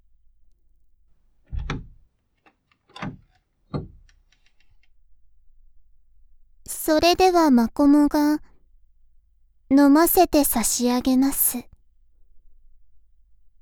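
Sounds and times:
metal cage door rattling open: 0:01.5 - 0:04.6
speech: 0:06.8 - 0:08.5, 0:09.7 - 0:11.7.

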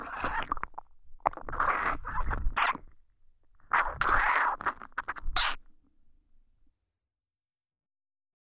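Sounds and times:
ASMR ear licking loop: 0:00.0 - 0:03.0, 0:03.6 - 0:05.7.

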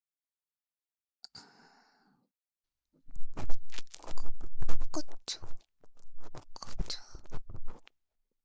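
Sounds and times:
ear cleaning in the right ear: 0:03.2 - 0:07.9.

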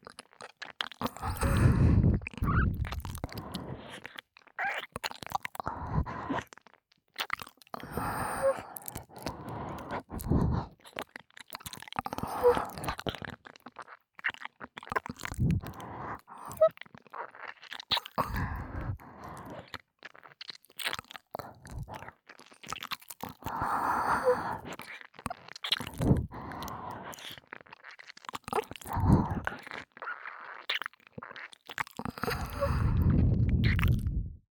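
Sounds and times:
ASMR ear licking sounds: 0:00.1 - 0:34.3
ASMR breathy sighs: 0:01.0 - 0:02.2, 0:03.0 - 0:04.2, 0:05.6 - 0:06.4, 0:07.8 - 0:10.8, 0:12.1 - 0:13.0, 0:15.4 - 0:16.7, 0:18.2 - 0:19.8, 0:21.4 - 0:22.1, 0:23.4 - 0:24.8, 0:26.0 - 0:27.4, 0:28.9 - 0:29.6, 0:32.1 - 0:34.2.

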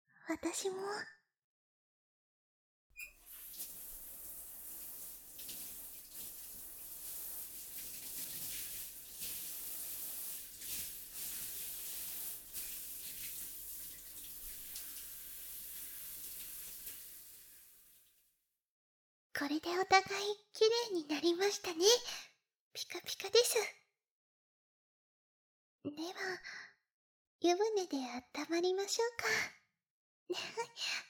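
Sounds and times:
speech: 0:00.3 - 0:01.2, 0:19.4 - 0:23.8, 0:25.8 - 0:26.7, 0:27.4 - 0:29.6, 0:30.3 - 0:31.0
shower water rinsing off soap foam: 0:03.0 - 0:18.1.

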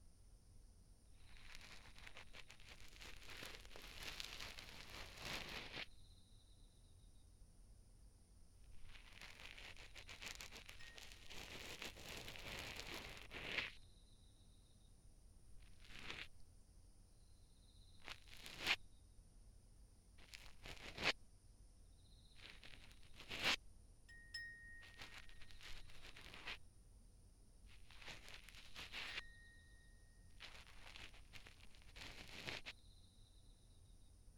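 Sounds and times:
cotton swab asmr: 0:01.2 - 0:05.9, 0:08.8 - 0:13.8, 0:15.6 - 0:16.4, 0:18.0 - 0:18.8, 0:20.2 - 0:21.2, 0:22.4 - 0:23.6, 0:24.8 - 0:26.6, 0:27.7 - 0:29.7, 0:30.3 - 0:32.8.

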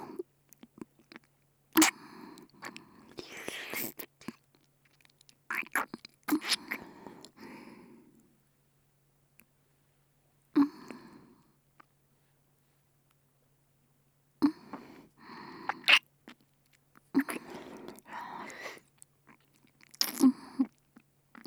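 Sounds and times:
melting ear licking sounds: 0:01.8 - 0:07.4, 0:15.7 - 0:21.4.

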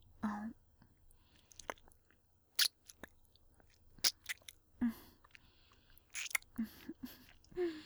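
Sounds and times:
ASMR ear-eating wet smacks, clicks and nibbling bites: 0:01.5 - 0:02.0, 0:02.6 - 0:03.2, 0:04.0 - 0:04.6, 0:06.1 - 0:07.4.

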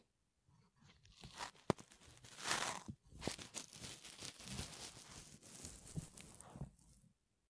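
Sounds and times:
ASMR ear cleaning after a meal: 0:01.2 - 0:06.9.

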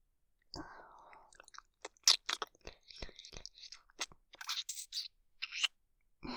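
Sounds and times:
ASMR licking mouth sounds: 0:01.3 - 0:05.7.

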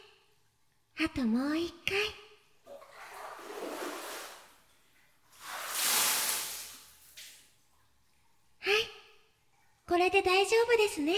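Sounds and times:
speech: 0:01.0 - 0:02.2, 0:10.5 - 0:11.1
water pouring over a body rinsing off soap: 0:02.8 - 0:04.6, 0:05.3 - 0:07.4.

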